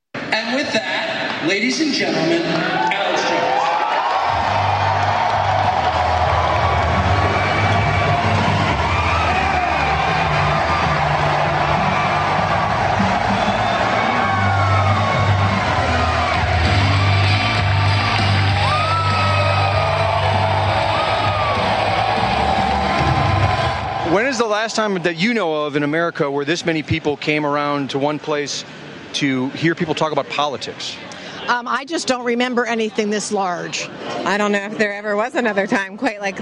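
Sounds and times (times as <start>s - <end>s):
speech: 0.3s - 3.0s, 24.1s - 36.3s
large crowd cheering and shouting to welcome a speaker: 2.3s - 26.2s.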